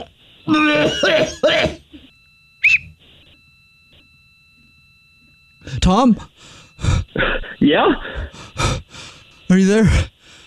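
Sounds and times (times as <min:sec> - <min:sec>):
speech: 0:00.0 - 0:01.6, 0:05.9 - 0:06.5, 0:07.2 - 0:08.8, 0:09.5 - 0:10.1
person coughing up a lodged whistle: 0:00.6 - 0:01.8, 0:07.2 - 0:07.6.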